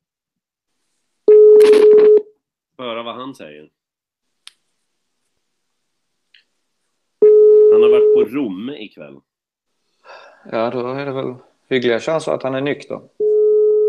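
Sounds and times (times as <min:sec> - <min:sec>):
telephone ringing tone: 0:01.3 - 0:02.2, 0:07.2 - 0:08.3, 0:13.2 - 0:13.8
speech: 0:02.8 - 0:03.8, 0:07.8 - 0:09.3, 0:10.4 - 0:13.3.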